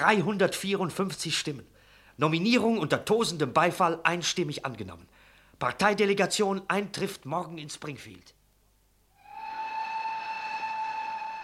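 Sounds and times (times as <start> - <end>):
speech: 0.0 - 8.4
steam train whistle: 9.2 - 11.4.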